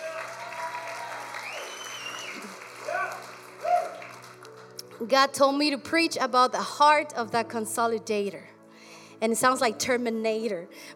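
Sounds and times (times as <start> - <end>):
audience applause: 0.0 - 4.8
speech: 5.0 - 8.5, 9.2 - 10.9.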